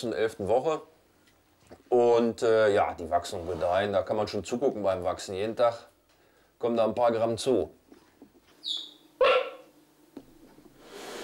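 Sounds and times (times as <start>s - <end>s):
speech: 0.0s - 1.0s, 1.7s - 5.9s, 6.6s - 7.8s, 8.6s - 9.3s
young puppies squeaking: 8.6s - 9.6s.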